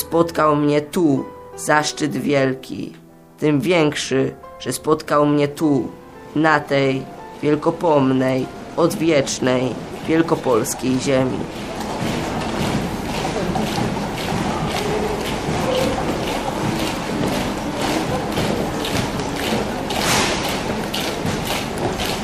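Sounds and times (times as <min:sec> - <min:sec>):
speech: 0:00.1 - 0:12.1
marching footsteps of a military column: 0:06.3 - 0:22.2.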